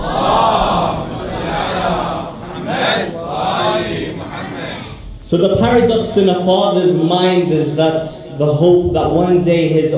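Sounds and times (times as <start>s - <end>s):
audience reciting salawat together at a majlis gathering: 0.0s - 5.1s
speech: 5.3s - 9.9s.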